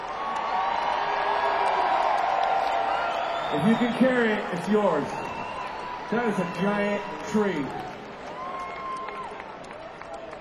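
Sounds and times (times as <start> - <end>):
audience clapping at a live event: 0.0 - 10.4
speech: 3.5 - 5.3, 6.1 - 8.0.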